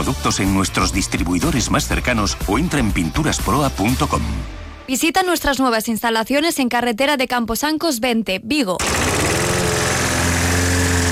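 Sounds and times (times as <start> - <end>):
speech: 0.0 - 9.1
lawn mower cutting grass: 8.8 - 11.1.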